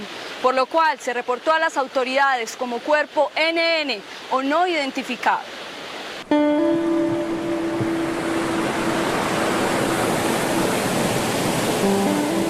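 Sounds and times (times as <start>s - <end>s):
river water pouring over rocks: 0.0s - 12.4s
speech: 0.4s - 5.6s
faint sustained musical tone: 6.2s - 12.4s.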